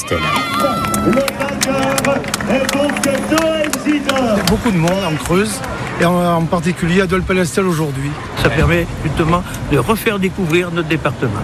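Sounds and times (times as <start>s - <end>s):
crowd shouting and cheering: 0.0s - 7.3s
speech: 0.1s - 0.3s, 1.0s - 1.4s, 4.0s - 11.4s
scattered claps: 0.2s - 6.7s.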